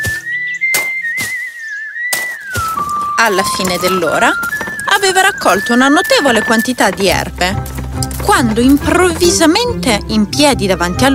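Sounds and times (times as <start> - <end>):
man gathering peat on a moor whistling a melody: 0.0 - 3.2
sharp percussive thumps: 2.1 - 10.1
speech: 3.2 - 11.1.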